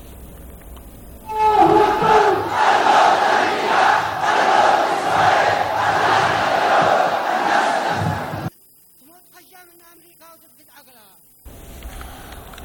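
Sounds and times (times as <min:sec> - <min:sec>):
Yemeni protesters chanting slogans at street rally: 0:01.3 - 0:08.5.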